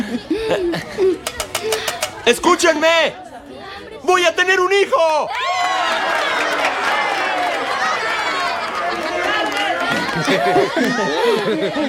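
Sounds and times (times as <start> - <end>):
laughter: 0.0 - 1.9, 5.8 - 11.8
speech: 0.5 - 1.2, 2.3 - 3.2, 4.1 - 5.6, 10.2 - 11.8
crowd cheering ovation: 5.0 - 11.8.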